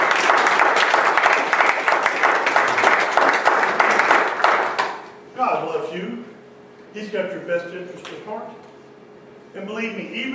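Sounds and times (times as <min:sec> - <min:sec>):
audience applause: 0:00.0 - 0:05.1
speech: 0:06.9 - 0:08.6, 0:09.5 - 0:10.3.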